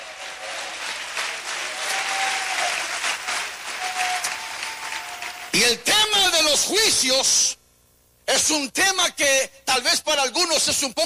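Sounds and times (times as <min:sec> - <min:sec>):
audience applause: 0:00.0 - 0:05.6
speech: 0:05.6 - 0:06.0, 0:06.6 - 0:07.6, 0:08.4 - 0:11.0.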